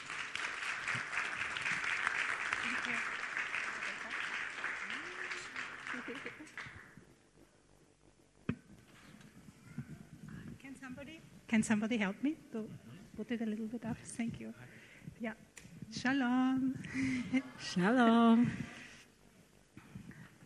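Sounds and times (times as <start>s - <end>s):
audience applause welcoming guests: 0.0s - 7.0s
speech: 6.2s - 6.8s, 11.5s - 18.8s.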